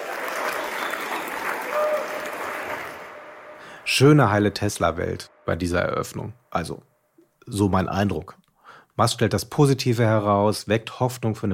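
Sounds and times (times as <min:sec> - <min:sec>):
audience applause: 0:00.0 - 0:04.2
speech: 0:03.9 - 0:06.9, 0:07.5 - 0:08.4, 0:09.0 - 0:11.5.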